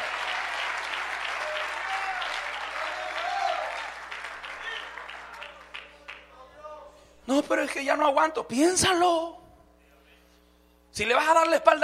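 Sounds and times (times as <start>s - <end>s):
audience applause: 0.0s - 6.3s
speech: 7.3s - 9.4s, 11.0s - 11.8s.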